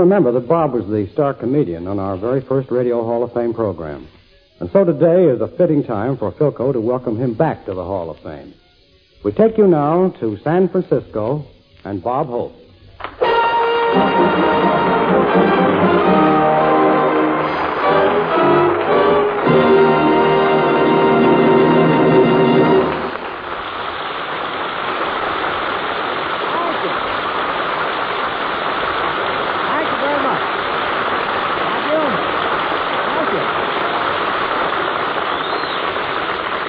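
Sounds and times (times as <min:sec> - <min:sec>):
speech: 0:00.0 - 0:08.6, 0:09.2 - 0:12.6, 0:13.9 - 0:15.7
audience applause: 0:13.0 - 0:36.6.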